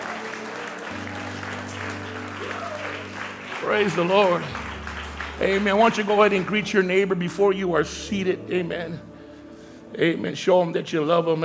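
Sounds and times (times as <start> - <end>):
audience clapping: 0.0 - 7.7
speech: 3.6 - 4.6, 5.4 - 9.1, 9.9 - 11.4.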